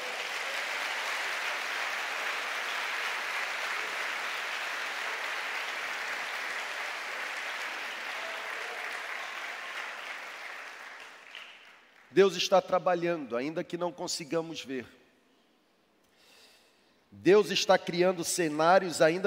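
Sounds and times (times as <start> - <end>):
applause: 0.0 - 12.2
speech: 12.1 - 15.0, 17.2 - 19.2.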